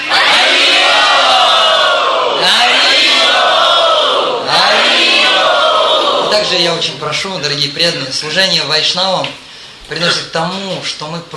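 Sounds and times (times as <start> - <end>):
crowd shouting a chant in unison: 0.0 - 6.6
speech: 6.5 - 11.3.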